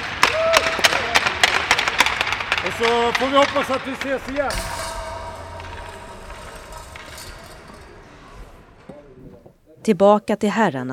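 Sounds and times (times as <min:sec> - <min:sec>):
applause hand claps: 0:00.0 - 0:04.5
speech: 0:02.7 - 0:04.8, 0:09.8 - 0:10.9.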